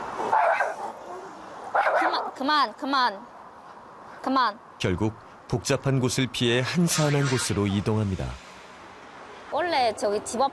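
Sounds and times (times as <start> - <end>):
dogs barking: 0.1 - 2.4
speech: 0.2 - 3.3, 4.2 - 8.4, 9.6 - 10.5.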